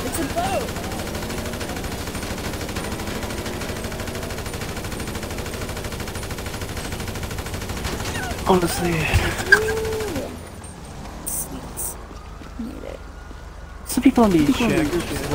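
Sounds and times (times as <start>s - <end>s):
gunfire in a street gun battle: 0.0s - 10.4s, 14.2s - 15.3s
speech: 8.5s - 9.8s, 14.1s - 15.3s.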